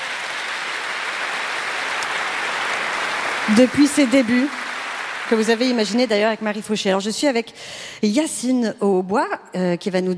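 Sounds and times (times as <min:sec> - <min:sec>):
audience applause: 0:00.0 - 0:06.7
speech: 0:03.5 - 0:04.6, 0:05.3 - 0:10.1.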